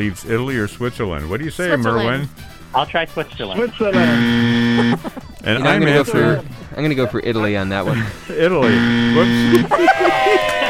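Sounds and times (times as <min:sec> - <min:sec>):
speech: 0:00.0 - 0:10.5
laughter: 0:03.5 - 0:10.6
game show buzzer: 0:03.9 - 0:05.1, 0:08.6 - 0:09.7.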